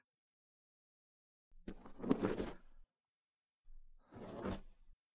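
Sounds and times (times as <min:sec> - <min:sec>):
ear cleaning on a lap pillow: 0:01.6 - 0:02.8, 0:04.0 - 0:04.8.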